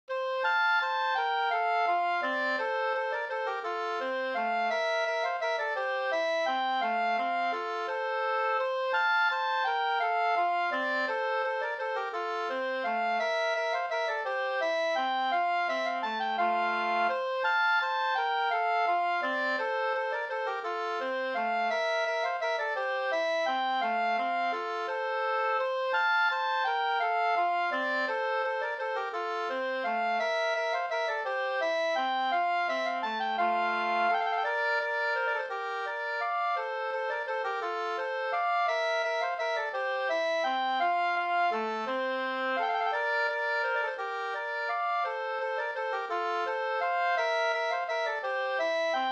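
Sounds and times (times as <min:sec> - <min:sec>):
waltz on nyckelharpa: 0:00.0 - 0:49.1.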